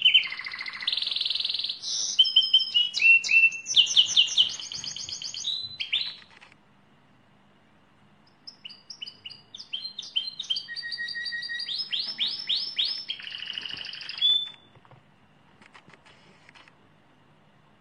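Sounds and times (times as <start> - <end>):
Lizard canary singing trills and whistled slurs: 0.0 - 6.3, 8.2 - 14.8.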